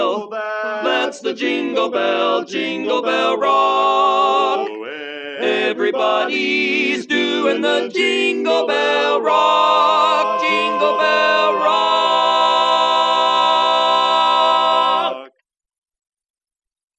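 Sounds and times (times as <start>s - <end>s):
Christmas song lead melody: 0.0s - 15.2s.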